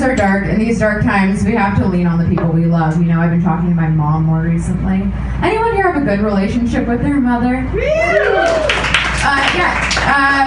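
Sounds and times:
speech: 0.0 - 10.4
audience member clapping: 8.4 - 10.1.

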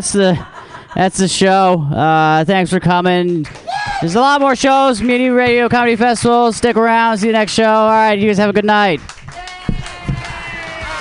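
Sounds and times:
laughter: 0.0 - 1.5
speech: 0.0 - 9.2
audience clapping: 3.2 - 10.9.

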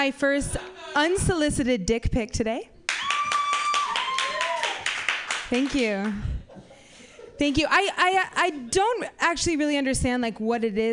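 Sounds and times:
speech: 0.0 - 2.7, 5.5 - 6.4, 7.4 - 10.9
high whooping cheer: 2.9 - 5.2
audience clapping: 2.9 - 6.2.

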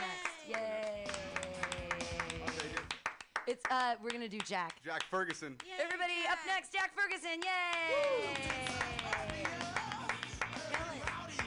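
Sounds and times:
small audience clapping rhythmically: 0.0 - 6.6, 7.3 - 11.4
speech: 3.5 - 9.6.

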